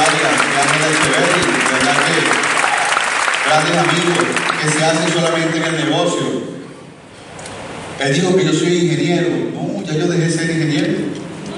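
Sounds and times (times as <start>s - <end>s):
applause: 0.0s - 5.8s
speech: 3.6s - 6.6s, 8.0s - 11.2s.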